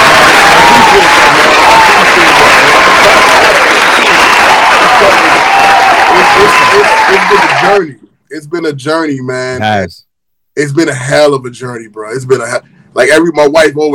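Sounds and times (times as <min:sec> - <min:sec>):
applause: 0:00.0 - 0:07.8
speech: 0:07.8 - 0:13.9.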